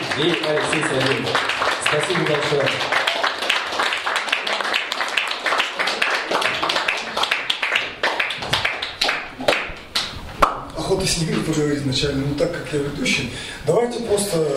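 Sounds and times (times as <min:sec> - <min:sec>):
audience applause: 0:00.0 - 0:10.1
speech: 0:00.2 - 0:03.1, 0:11.0 - 0:14.5.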